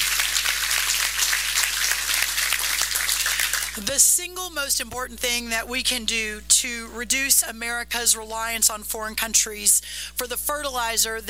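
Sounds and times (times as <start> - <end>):
audience round of applause: 0.0 - 3.8
speech: 3.8 - 11.2.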